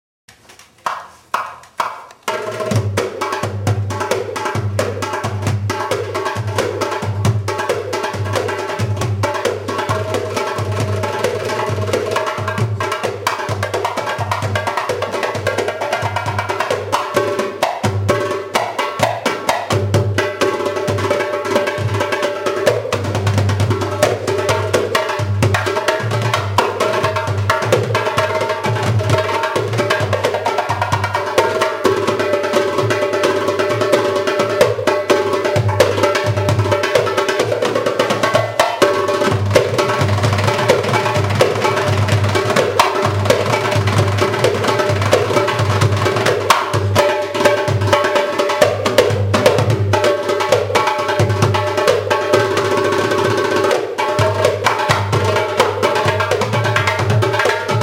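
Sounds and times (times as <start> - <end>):
darbuka drumming: 0.8 - 57.8.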